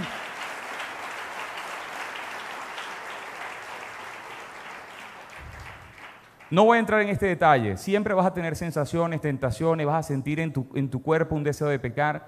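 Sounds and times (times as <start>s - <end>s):
audience applause: 0.0s - 6.6s
speech: 6.5s - 12.2s.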